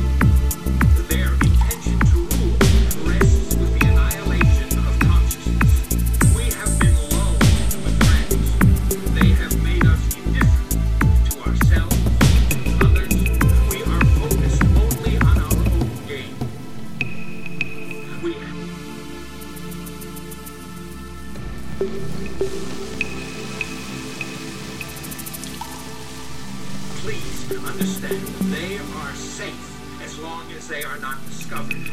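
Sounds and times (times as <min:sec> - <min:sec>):
raindrops: 0:00.0 - 0:17.2, 0:21.3 - 0:29.2.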